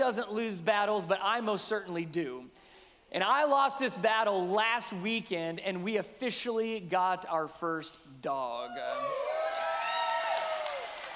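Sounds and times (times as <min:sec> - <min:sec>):
speech: 0:00.0 - 0:09.4
sustained cheer or whoop: 0:08.6 - 0:11.1
audience clapping: 0:09.0 - 0:11.1.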